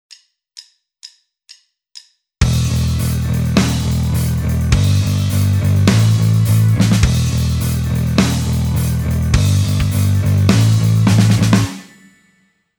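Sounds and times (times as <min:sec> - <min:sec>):
backing music: 0:02.4 - 0:12.3.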